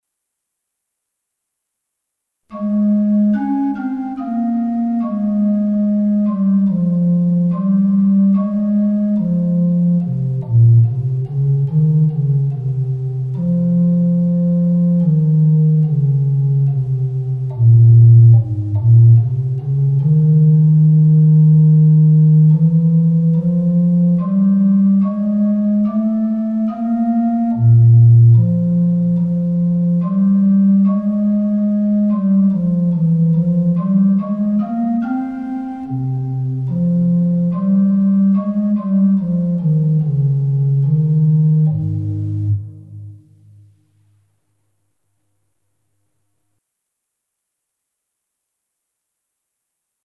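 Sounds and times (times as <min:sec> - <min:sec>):
instrumental music: 0:02.5 - 0:45.8.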